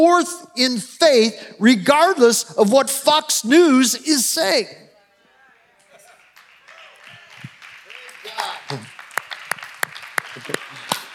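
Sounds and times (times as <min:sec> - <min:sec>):
speech: 0:00.0 - 0:04.8, 0:08.7 - 0:08.9, 0:10.4 - 0:10.8
indistinct voices and murmuring: 0:04.8 - 0:09.2
polite golf clap: 0:06.1 - 0:11.1.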